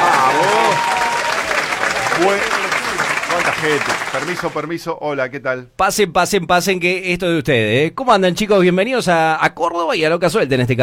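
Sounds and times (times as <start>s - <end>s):
studio applause from a small group: 0.0s - 4.8s
speech: 3.6s - 10.8s.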